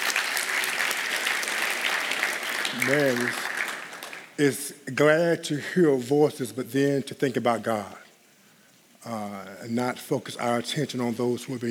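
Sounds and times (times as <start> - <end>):
audience applause: 0.0 - 4.4
speech: 2.8 - 3.5, 4.4 - 8.0, 9.0 - 11.7.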